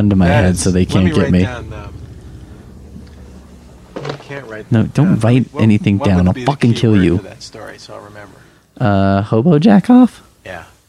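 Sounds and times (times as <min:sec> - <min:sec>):
speech: 0:00.0 - 0:02.0, 0:04.3 - 0:10.7
helicopter droning overhead: 0:00.0 - 0:08.3.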